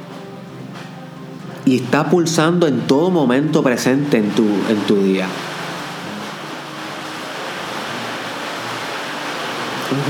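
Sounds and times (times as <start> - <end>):
speech: 1.6 - 5.5
sudden heavy rain downpour in Yauco: 2.1 - 10.0.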